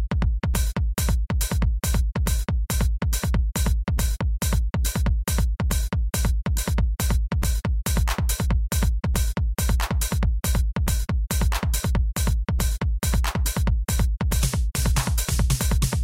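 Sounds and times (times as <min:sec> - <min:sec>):
music loop: 0:00.1 - 0:16.0.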